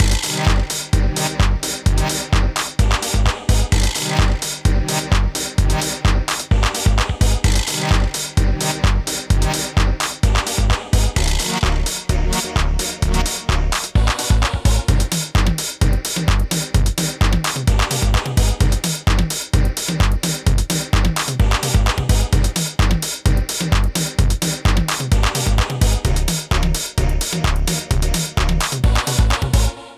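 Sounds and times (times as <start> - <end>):
old skool house music: 0.0 - 29.8.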